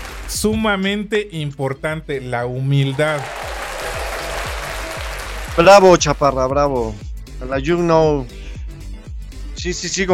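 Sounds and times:
crowd applauding: 0.0s - 0.5s, 2.9s - 6.0s
speech: 0.3s - 3.4s, 5.6s - 8.4s, 9.6s - 10.1s.

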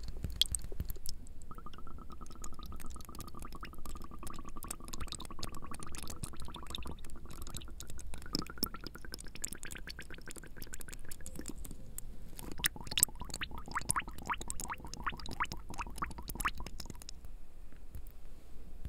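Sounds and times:
water drops from sprinklers pattering: 0.0s - 11.8s, 12.4s - 17.2s
thin steady tone: 0.0s - 17.2s.

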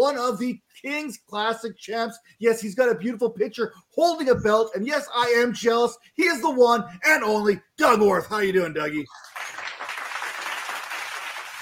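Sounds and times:
speech: 0.0s - 9.3s
applause sound effect: 9.1s - 11.6s.

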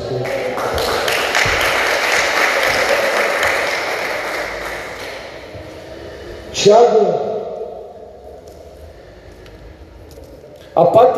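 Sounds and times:
audience applause: 0.0s - 5.5s
speech: 6.6s - 7.3s, 10.8s - 11.1s.

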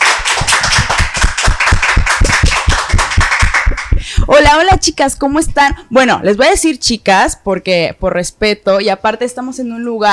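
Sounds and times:
studio audience applause: 0.0s - 3.9s
speech: 4.5s - 10.1s.

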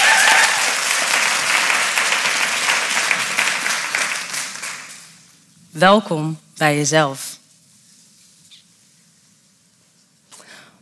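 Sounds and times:
audience applauding: 0.0s - 5.3s
speech: 5.8s - 7.3s.

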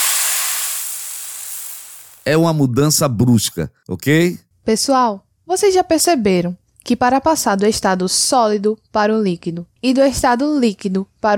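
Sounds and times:
water drop sizzling on hot plate: 0.0s - 2.3s
speech: 2.3s - 11.3s.

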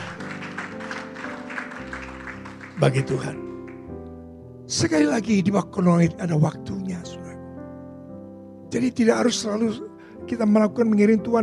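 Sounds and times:
audience clapping hands: 0.0s - 4.0s
speech: 2.8s - 3.5s, 4.7s - 7.2s, 8.7s - 11.4s.

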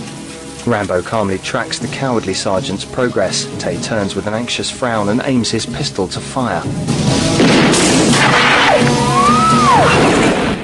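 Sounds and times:
speech: 0.7s - 10.5s
explosion of an arrow hitting a man in a Rambo film: 7.3s - 10.6s.

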